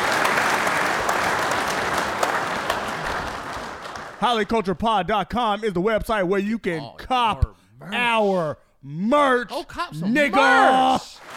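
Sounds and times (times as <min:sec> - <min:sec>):
round of applause: 0:00.0 - 0:04.2, 0:10.5 - 0:11.3
speech: 0:04.2 - 0:11.2.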